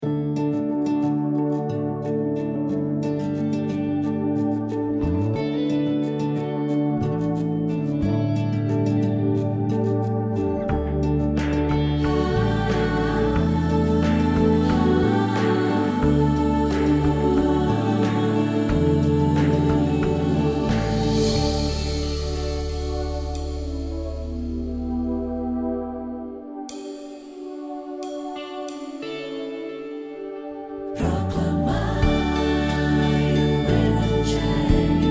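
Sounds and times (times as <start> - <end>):
psalm playback backing track: 0.0 - 35.0.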